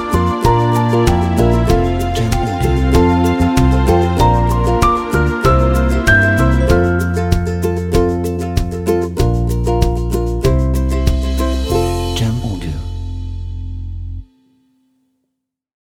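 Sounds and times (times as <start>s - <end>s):
upbeat summer folk music: 0.0s - 14.0s.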